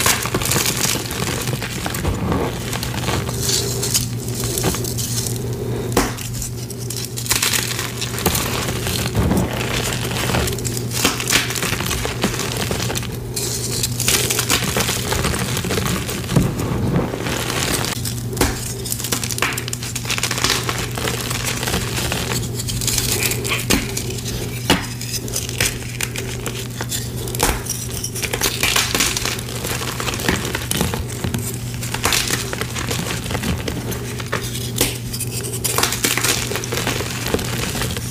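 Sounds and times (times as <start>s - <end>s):
gym chalk blocks crushed: 0.0s - 38.0s.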